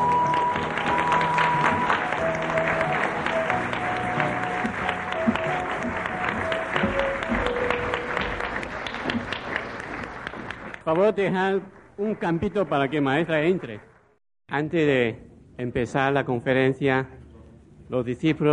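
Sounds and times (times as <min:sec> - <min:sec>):
faint sustained musical tones: 0:00.0 - 0:08.7
audience applause: 0:00.0 - 0:14.1
speech: 0:10.9 - 0:13.9, 0:14.5 - 0:17.2, 0:17.9 - 0:18.5.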